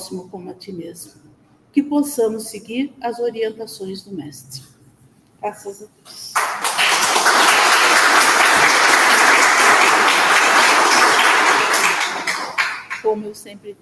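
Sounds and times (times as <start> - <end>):
speech: 0.1 - 4.7, 5.4 - 6.6, 13.0 - 13.8
audience applause: 6.4 - 13.0.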